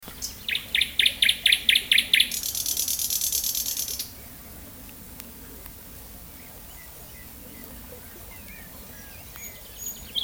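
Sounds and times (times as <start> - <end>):
thrush nightingale song with whistles, rattles and buzzy trill: 0.1 - 4.3, 6.4 - 10.2.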